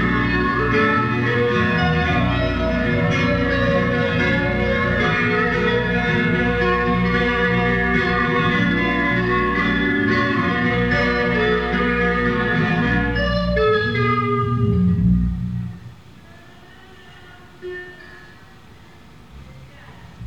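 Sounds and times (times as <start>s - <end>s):
soundcheck: 0.0s - 16.2s.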